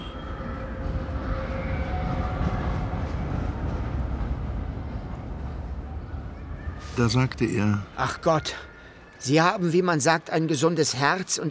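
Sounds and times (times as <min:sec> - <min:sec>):
tram passing: 0:00.0 - 0:08.7
speech: 0:07.0 - 0:11.5.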